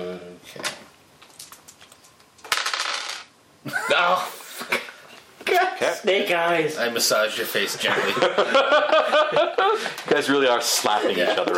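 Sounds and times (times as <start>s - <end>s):
dice being rolled on a hard tabletop: 1.3s - 3.3s
speech: 3.6s - 4.7s, 5.8s - 11.5s
laughter: 3.7s - 5.0s, 7.8s - 11.5s.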